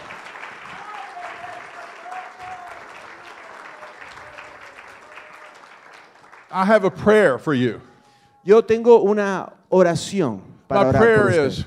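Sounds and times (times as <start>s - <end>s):
applause: 0.0s - 7.5s
speech: 6.5s - 11.6s.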